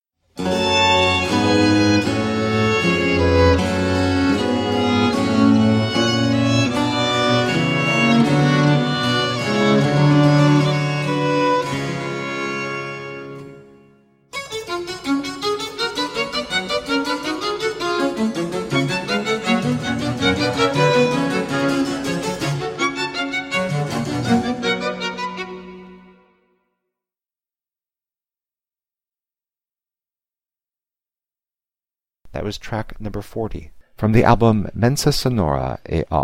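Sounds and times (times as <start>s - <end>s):
sonatina in adagio and presto movements: 0.4s - 26.6s
person speaking: 32.3s - 36.2s.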